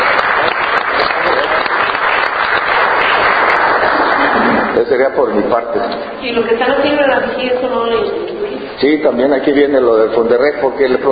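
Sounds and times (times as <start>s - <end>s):
applause: 0.0s - 5.0s
speech: 4.8s - 11.0s.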